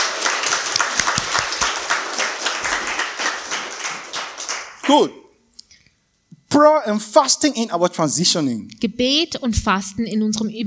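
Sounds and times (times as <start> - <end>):
audience clapping: 0.0 - 5.2
speech: 4.9 - 5.2, 6.5 - 10.6.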